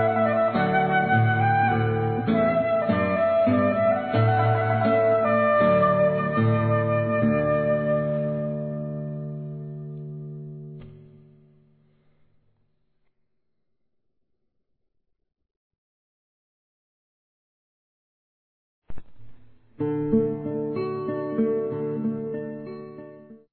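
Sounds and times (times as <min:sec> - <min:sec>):
flute: 0:00.0 - 0:09.2
guitar: 0:00.0 - 0:12.4, 0:18.9 - 0:23.5.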